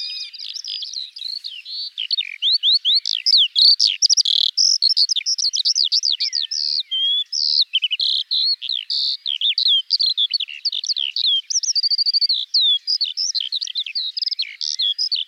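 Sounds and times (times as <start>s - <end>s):
skylark singing: 0.0s - 15.2s.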